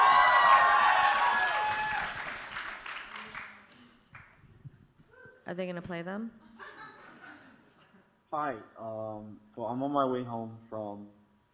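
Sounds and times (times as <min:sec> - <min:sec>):
audience cheering: 0:00.0 - 0:03.4
speech: 0:05.5 - 0:06.5, 0:08.3 - 0:11.2.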